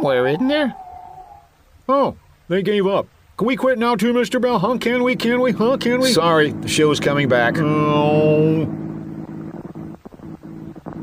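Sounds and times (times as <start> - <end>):
speech: 0.0 - 0.8, 1.9 - 8.8
buzzing tone: 4.6 - 11.0
car motor sputtering: 4.8 - 11.0.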